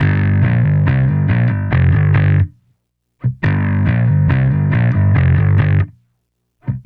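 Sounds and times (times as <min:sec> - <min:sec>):
bass: 0:00.0 - 0:02.6, 0:03.2 - 0:06.0.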